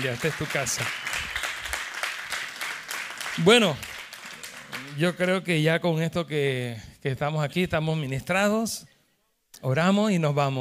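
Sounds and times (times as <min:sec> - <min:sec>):
speech: 0:00.0 - 0:01.3, 0:03.4 - 0:03.9, 0:04.8 - 0:08.9, 0:09.6 - 0:10.5
applause: 0:00.0 - 0:05.5.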